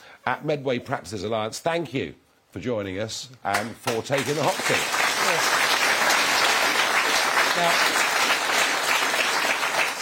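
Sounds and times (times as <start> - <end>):
speech: 0.2 - 5.6, 7.6 - 8.0
round of applause from a group: 3.5 - 10.0.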